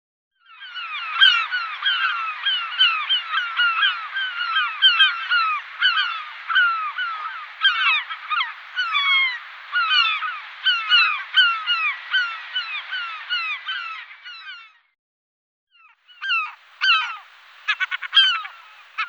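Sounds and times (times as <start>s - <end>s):
European herring gull calling: 0.4s - 14.7s, 15.8s - 19.0s.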